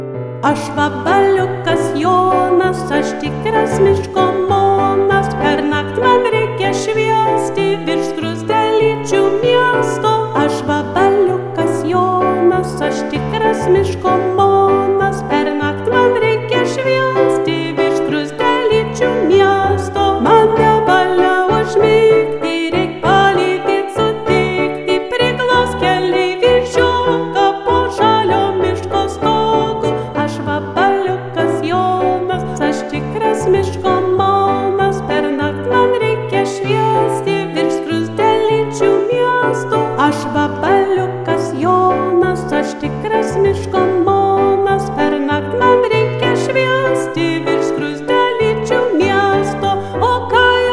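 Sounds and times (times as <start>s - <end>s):
soprano singing: 0.3s - 50.7s.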